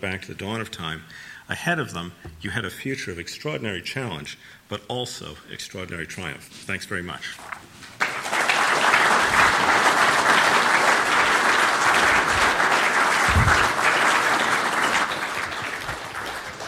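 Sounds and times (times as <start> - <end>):
speech: 0.0 - 7.7
audience applauding: 8.0 - 16.6.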